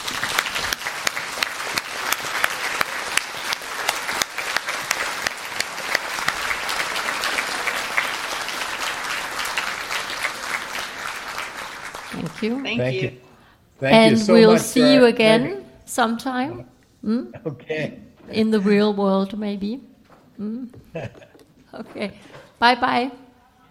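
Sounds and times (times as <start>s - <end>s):
audience applause: 0.0s - 13.0s
speech: 12.4s - 13.2s, 13.8s - 23.2s.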